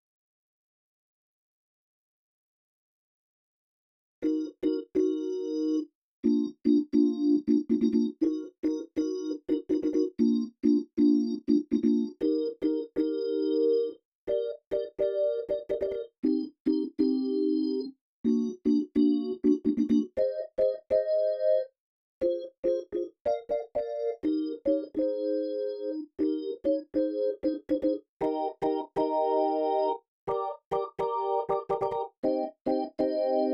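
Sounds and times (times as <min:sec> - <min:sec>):
organ: 0:04.2 - 0:33.5.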